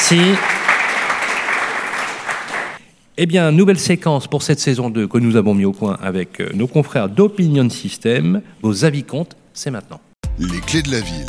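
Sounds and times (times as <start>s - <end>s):
applause: 0.0s - 2.8s
speech: 0.1s - 0.5s, 3.2s - 11.2s.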